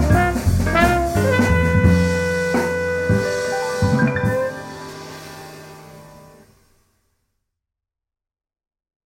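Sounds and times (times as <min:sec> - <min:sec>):
full band playing blues in F: 0:00.0 - 0:06.1.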